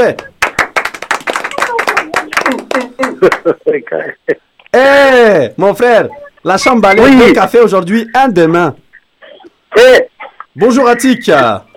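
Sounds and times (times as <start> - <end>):
speech: 0.0 - 0.3, 2.5 - 8.8, 9.7 - 11.7
audience clapping away from the microphones: 0.0 - 3.5
laughter: 1.5 - 4.4.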